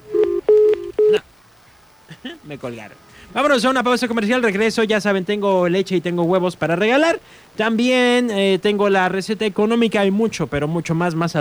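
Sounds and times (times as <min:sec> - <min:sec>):
touch-tone telephone dialing DTMF beeps: 0:00.1 - 0:01.2
speech: 0:02.5 - 0:11.3.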